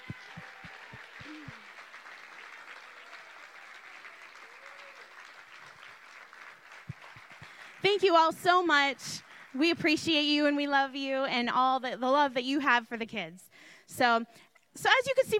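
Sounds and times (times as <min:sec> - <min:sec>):
audience applause: 0:00.0 - 0:09.6
speech: 0:07.8 - 0:15.3.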